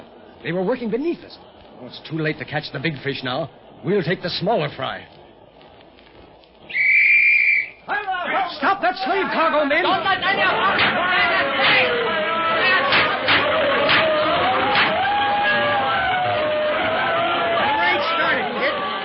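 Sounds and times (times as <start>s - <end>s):
crowd on a dock chattering: 0.0s - 6.8s, 7.6s - 19.0s
speech: 0.4s - 5.2s, 8.5s - 11.8s
excited shouts: 7.9s - 19.0s.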